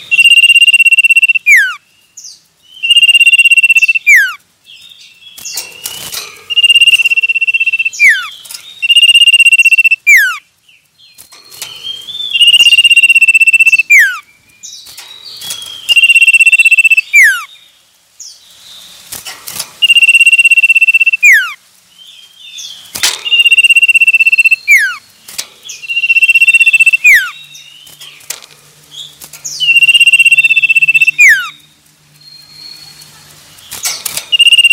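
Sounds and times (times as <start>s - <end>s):
common iora singing: 0.0s - 1.8s, 2.8s - 4.4s, 5.8s - 10.4s, 11.8s - 14.2s, 15.5s - 17.5s, 19.8s - 21.6s, 23.2s - 25.0s, 25.7s - 27.6s, 29.4s - 31.7s, 33.8s - 34.7s.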